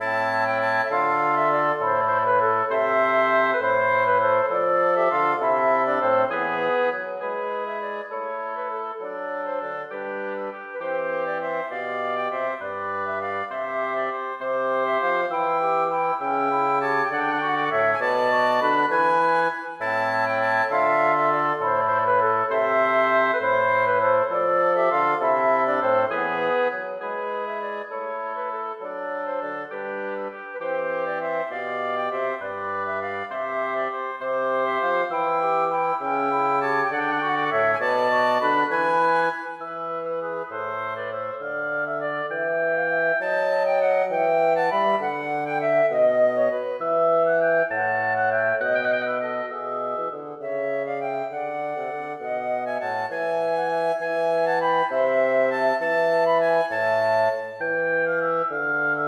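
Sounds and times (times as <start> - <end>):
wind quartet playing a gigue without harpsichord: 0.0 - 59.0.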